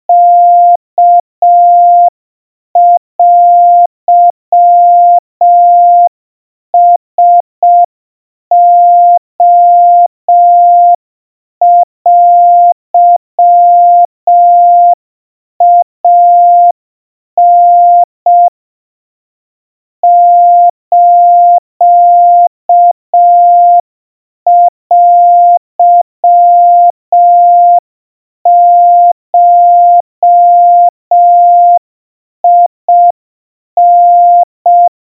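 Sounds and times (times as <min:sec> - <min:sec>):
700 Hz Morse code tones: 0:00.1 - 0:02.1, 0:02.8 - 0:06.1, 0:06.8 - 0:07.9, 0:08.5 - 0:11.0, 0:11.6 - 0:15.0, 0:15.6 - 0:16.8, 0:17.4 - 0:18.5, 0:20.0 - 0:23.8, 0:24.5 - 0:27.8, 0:28.5 - 0:31.8, 0:32.4 - 0:33.2, 0:33.8 - 0:34.9.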